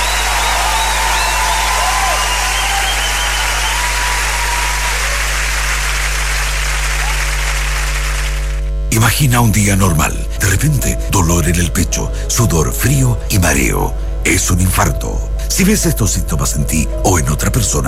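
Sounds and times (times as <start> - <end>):
faint whistles and cheers: 0.0 - 8.0
audience applauding: 0.0 - 8.6
speech: 9.2 - 17.8.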